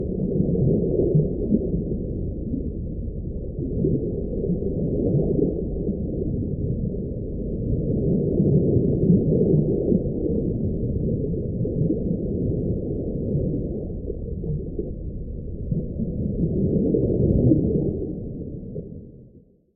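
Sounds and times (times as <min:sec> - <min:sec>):
deep sea underwater bubbles: 0:00.0 - 0:19.1
deep sea underwater waves: 0:00.0 - 0:19.1.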